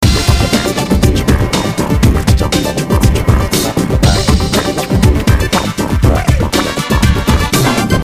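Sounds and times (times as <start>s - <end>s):
music loop: 0.0s - 8.0s.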